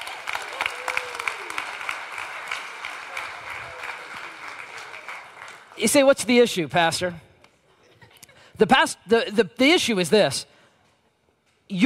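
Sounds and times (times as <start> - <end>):
audience applause: 0.0 - 5.8
speech: 5.8 - 7.3, 8.6 - 10.5.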